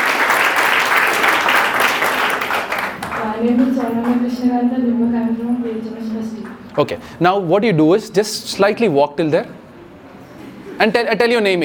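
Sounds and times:
audience cheering and applause: 0:00.0 - 0:03.0
speech: 0:03.4 - 0:09.6, 0:10.8 - 0:11.6.

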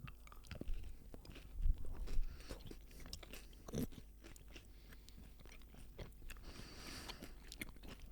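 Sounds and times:
person chewing a Boost chocolate bar: 0:00.0 - 0:08.1.

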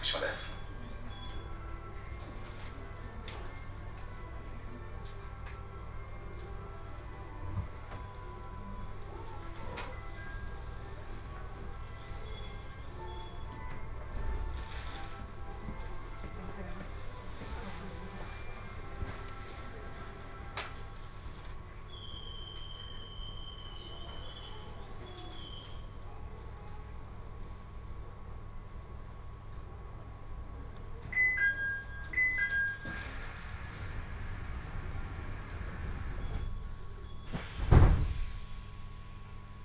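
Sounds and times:
Tohoku Main Line train rumble and hum: 0:00.0 - 0:39.6
short beeps: 0:31.2 - 0:33.0.

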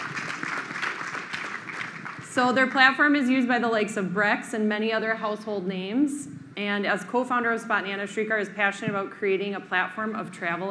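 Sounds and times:
audience applause: 0:00.0 - 0:02.3
speech: 0:02.4 - 0:10.7.

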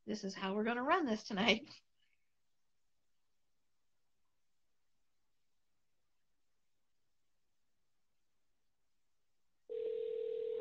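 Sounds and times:
speech: 0:00.1 - 0:01.9
telephone dialing tones: 0:09.7 - 0:10.5.

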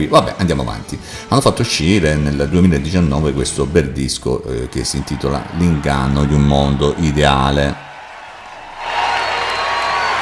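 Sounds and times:
speech: 0:00.0 - 0:07.8
audience applause: 0:04.5 - 0:10.1.

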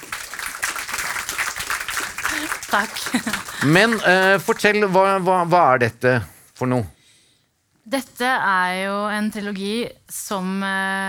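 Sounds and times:
applause: 0:00.0 - 0:05.2
laughter: 0:02.3 - 0:05.0
speech: 0:02.7 - 0:07.0, 0:07.9 - 0:11.0.

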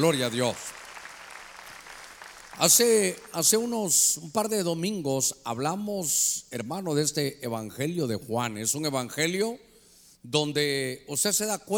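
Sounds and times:
speech: 0:00.0 - 0:00.8, 0:02.6 - 0:11.7
crowd clapping: 0:00.0 - 0:03.8.

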